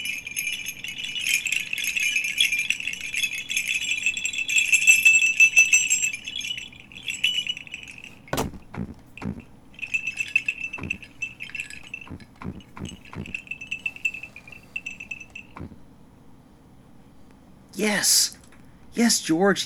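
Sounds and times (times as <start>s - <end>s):
sleigh bells: 0.0s - 15.9s
landing on the roof: 8.1s - 15.9s
speech: 19.0s - 19.6s.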